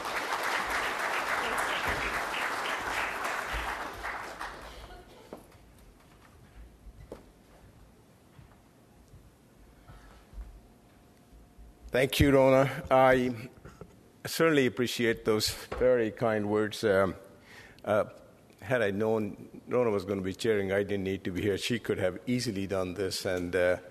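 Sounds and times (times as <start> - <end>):
audience applause welcoming the UBCM president: 0.0 - 5.1
speech: 11.9 - 13.6, 14.3 - 17.2, 17.8 - 23.8.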